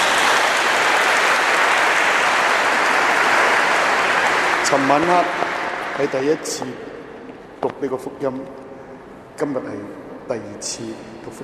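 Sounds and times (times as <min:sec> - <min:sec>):
audience applause: 0:00.0 - 0:06.5
speech: 0:04.7 - 0:05.4, 0:06.0 - 0:07.0, 0:07.6 - 0:08.6, 0:09.4 - 0:11.4.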